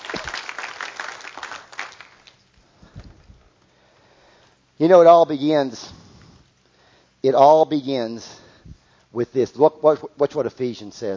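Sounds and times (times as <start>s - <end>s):
audience applause: 0.0s - 2.4s
speech: 4.8s - 6.0s, 7.2s - 8.4s, 9.2s - 11.1s.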